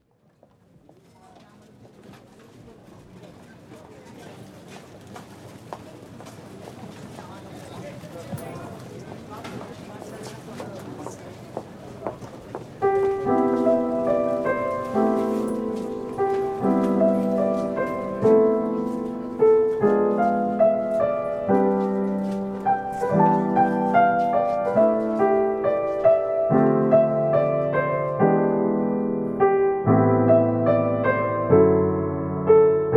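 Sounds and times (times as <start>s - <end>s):
christmas song cover: 12.8s - 32.9s.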